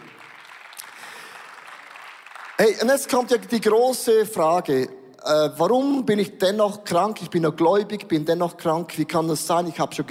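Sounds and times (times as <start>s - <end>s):
audience applause: 0.0s - 3.0s
speech: 2.6s - 10.0s.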